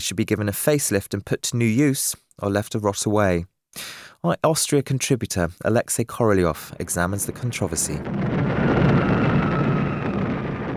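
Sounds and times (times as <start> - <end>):
speech: 0.0 - 8.7
archival roar of Allied aircraft bombing Vienna in World War II: 6.6 - 10.7.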